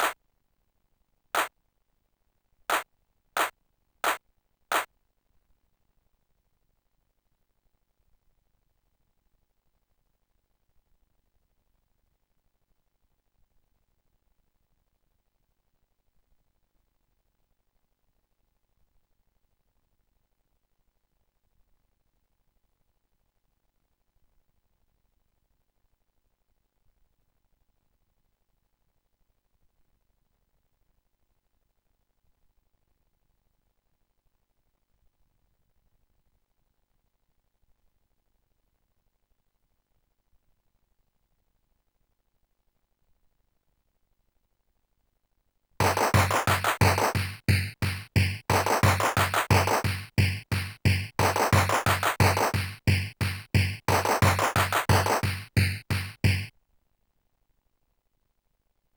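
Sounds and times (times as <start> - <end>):
drum: 3.4 - 4.9, 45.8 - 56.5.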